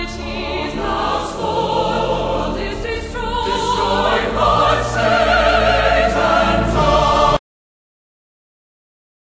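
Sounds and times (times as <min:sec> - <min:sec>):
chorale with orchestra: 0:00.0 - 0:07.4.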